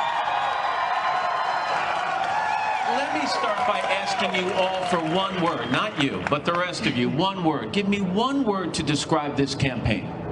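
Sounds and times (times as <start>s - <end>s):
audience clapping: 0.0s - 7.1s
crowd noise: 0.0s - 8.6s
speech: 3.1s - 10.2s.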